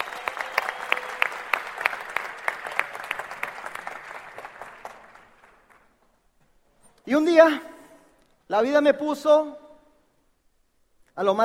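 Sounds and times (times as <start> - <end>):
applause: 0.0 - 6.2
speech: 7.1 - 7.7, 8.5 - 9.6, 11.2 - 11.4.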